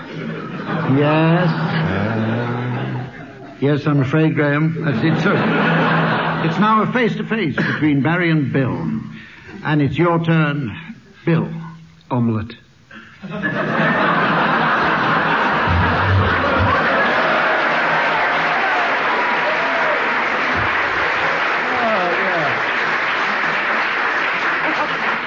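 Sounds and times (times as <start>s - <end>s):
studio audience laughter and chuckles: 0.0s - 3.7s, 4.7s - 6.8s, 13.2s - 19.3s, 20.1s - 25.2s
speech: 0.9s - 2.3s, 3.6s - 5.8s, 6.4s - 9.0s, 9.6s - 12.6s, 13.2s - 14.0s
studio audience applause: 13.8s - 25.2s
voices whooping: 15.6s - 20.5s.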